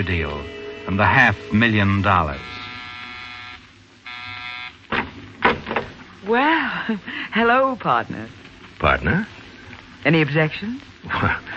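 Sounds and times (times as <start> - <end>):
speech: 0.0 - 2.6, 6.2 - 9.4, 10.0 - 11.5
apartment door buzzer: 0.0 - 4.8
sharp clunks: 4.9 - 6.0.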